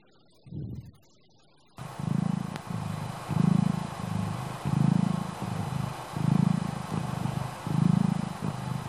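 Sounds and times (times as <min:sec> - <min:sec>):
cat purring: 0:01.8 - 0:08.8.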